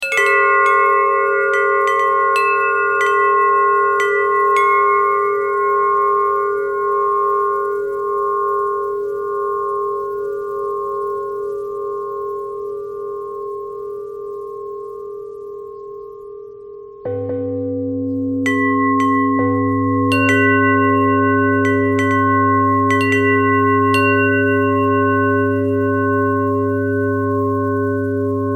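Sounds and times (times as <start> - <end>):
bell: 0.0 - 28.5.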